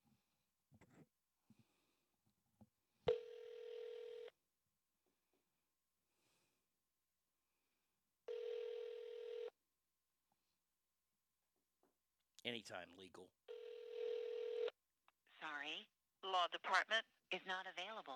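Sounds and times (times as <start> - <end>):
breaths: 1.5 - 2.2, 6.1 - 6.7
telephone ringback tone: 3.1 - 4.3, 8.3 - 9.5, 13.5 - 14.7
speech: 12.4 - 13.4, 15.4 - 18.1.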